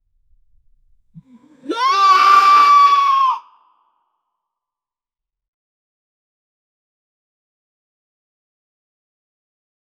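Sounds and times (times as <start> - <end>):
person shouting for joy: 1.6 - 3.6.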